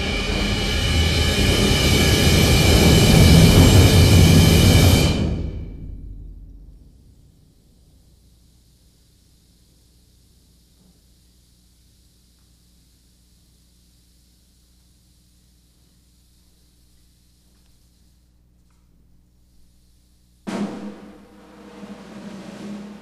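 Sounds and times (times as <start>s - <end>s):
percussion ensemble: 0.0s - 6.4s, 20.5s - 23.0s.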